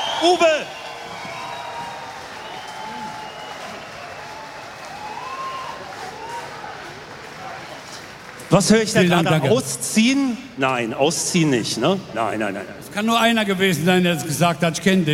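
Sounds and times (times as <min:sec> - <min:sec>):
audience applause for a band: 0:00.0 - 0:09.7
speech: 0:00.2 - 0:00.8, 0:08.5 - 0:15.1.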